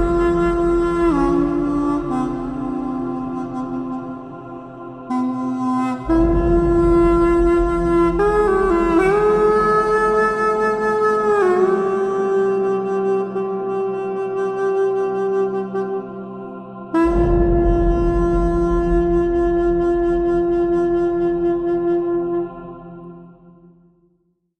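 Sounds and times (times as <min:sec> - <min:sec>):
pocket sax playing: 0:00.0 - 0:23.3.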